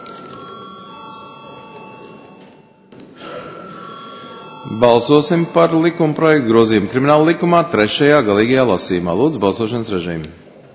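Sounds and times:
parliament session electric bell ringing: 0.0 - 7.4
speech: 4.7 - 10.4.

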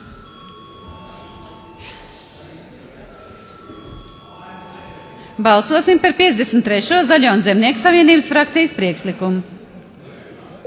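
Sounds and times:
parliament chamber bell ringing: 0.0 - 7.8
murmur: 0.0 - 10.6
speech: 5.4 - 9.6.

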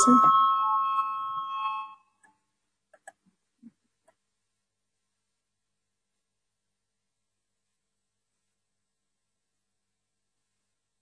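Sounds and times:
parliament voting bell ringing: 0.0 - 2.0.

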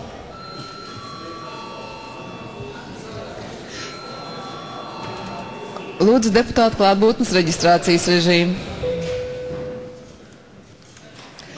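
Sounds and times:
constant low murmur of noise: 0.0 - 11.5
parliament chamber bell ringing: 0.3 - 8.2, 8.8 - 10.1
speech: 6.0 - 8.7.

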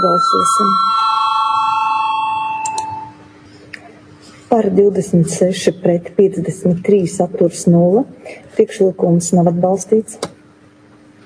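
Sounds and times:
speech: 0.0 - 1.1, 4.5 - 10.3
parliament voting bell: 0.0 - 3.2.

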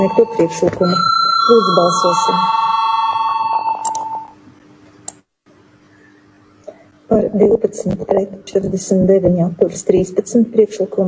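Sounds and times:
speech: 0.0 - 2.6, 7.3 - 11.0
parliament voting bell ringing: 0.0 - 4.4.

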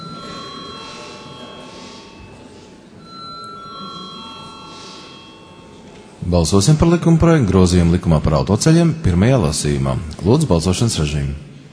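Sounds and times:
electric bell ringing in the Latvian Saeima parliament chamber before a vote: 0.0 - 7.2
speech: 6.3 - 11.5.

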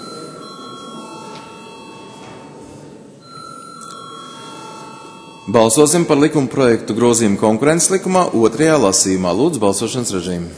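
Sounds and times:
parliament voting bell ringing: 0.0 - 6.9
speech: 5.5 - 10.5.

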